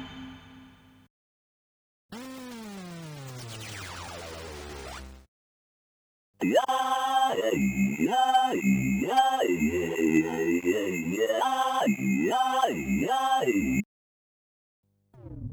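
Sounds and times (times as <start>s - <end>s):
Korg Kaossilator synthesizer: 6.4s - 13.8s.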